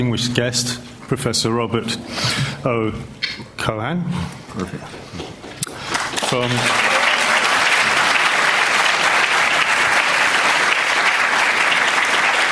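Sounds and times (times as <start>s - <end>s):
speech: 0.0s - 5.4s, 6.3s - 7.0s
audience applause: 5.7s - 12.4s.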